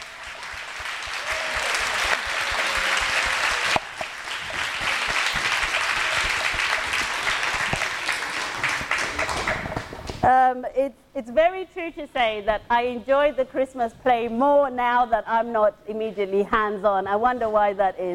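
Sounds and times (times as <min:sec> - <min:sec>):
audience applause: 0:00.0 - 0:10.0
speech: 0:10.2 - 0:18.1.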